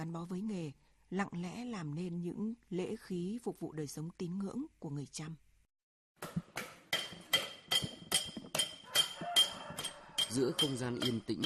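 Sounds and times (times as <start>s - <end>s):
speech: 0.0s - 5.4s, 10.3s - 11.4s
small hammer tapping on silver: 7.0s - 11.4s.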